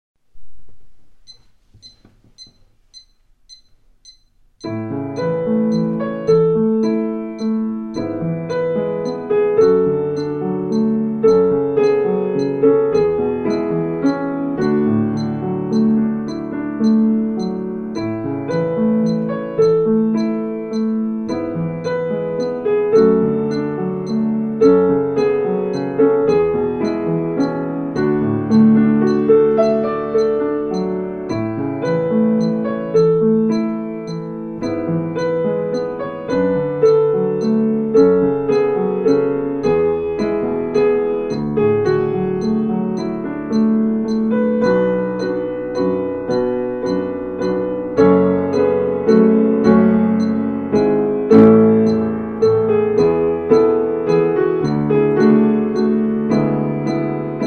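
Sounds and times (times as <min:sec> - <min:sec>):
piano: 0:00.2 - 0:57.4.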